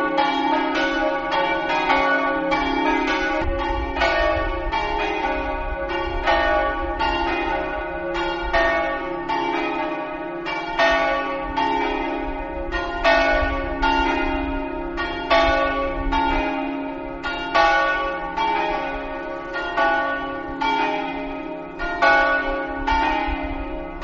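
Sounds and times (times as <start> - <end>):
bells ringing: 0.0 - 24.0.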